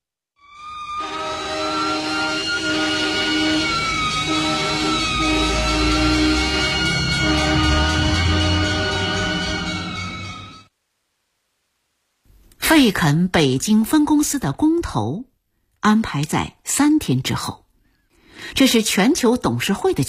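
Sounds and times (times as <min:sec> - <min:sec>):
fire engine sirens: 0:00.4 - 0:10.7
speech: 0:12.8 - 0:17.6, 0:18.4 - 0:20.0.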